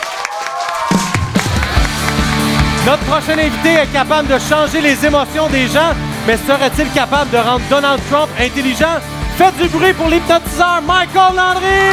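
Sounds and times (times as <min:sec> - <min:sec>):
audience applause: 0:00.0 - 0:04.0
speech: 0:02.8 - 0:11.9.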